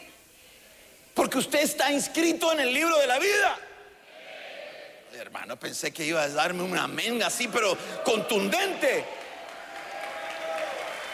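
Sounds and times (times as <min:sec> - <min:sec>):
speech: 0:01.2 - 0:03.7, 0:05.2 - 0:09.2
audience applause: 0:08.0 - 0:11.1.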